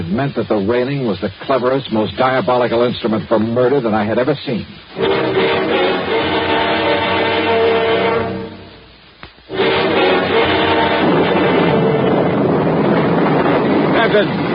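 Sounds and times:
roaring storm wind howling: 0.0 - 14.5
speech: 0.1 - 5.6, 14.2 - 14.5
faint crack: 9.1 - 9.5.

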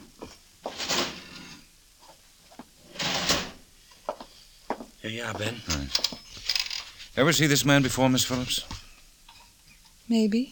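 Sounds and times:
desk drawer sliding open and shut: 0.7 - 1.6, 2.8 - 3.6
speech: 5.0 - 6.6, 7.2 - 8.8, 10.1 - 10.5.

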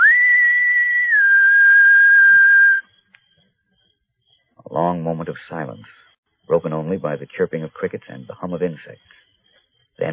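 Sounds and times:
person whistling softly: 0.0 - 3.3
speech: 5.0 - 9.3, 10.0 - 10.1.

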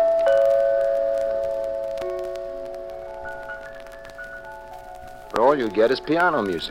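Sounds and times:
doorbell chime ringing: 0.0 - 2.6
speech: 5.5 - 6.6.

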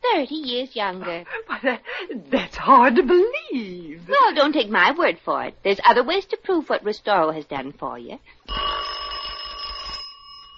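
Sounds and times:
faint hum: 0.0 - 10.5
speech: 0.2 - 8.8
laughter: 1.0 - 3.4
doorbell ringing: 8.5 - 10.5.

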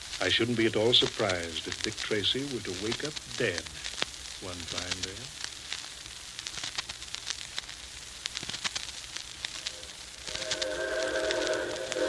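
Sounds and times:
sustained tonal hiss: 0.0 - 12.0
speech: 0.2 - 5.4
Hudson 4-6-4 steam locomotive train arriving: 9.7 - 12.0.

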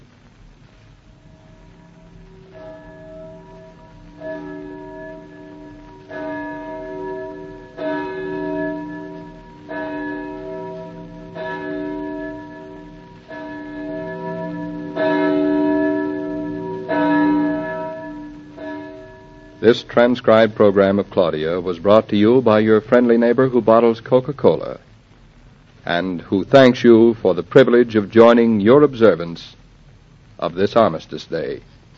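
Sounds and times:
bell tolling: 1.2 - 21.2
speech: 19.6 - 24.9, 25.9 - 29.6, 30.4 - 31.7.

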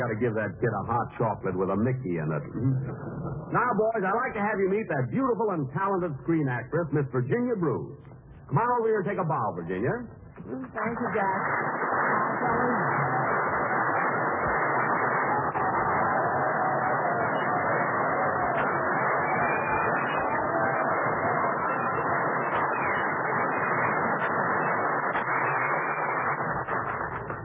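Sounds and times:
speech: 0.0 - 13.1
studio audience applause: 10.8 - 27.4.

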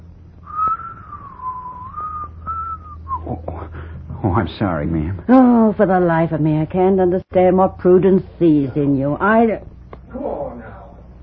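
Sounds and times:
faint low hum: 0.0 - 11.2
person whistling a tune: 0.4 - 3.3
speech: 3.3 - 3.5, 4.2 - 9.7.

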